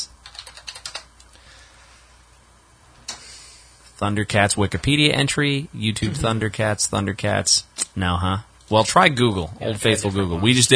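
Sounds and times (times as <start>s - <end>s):
computer keyboard typing for a web search: 0.2s - 1.2s
speech: 4.0s - 10.7s.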